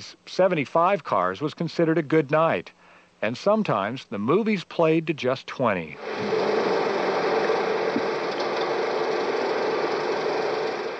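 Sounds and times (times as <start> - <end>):
speech: 0.0 - 6.4
35-millimeter film projector running: 6.0 - 10.9.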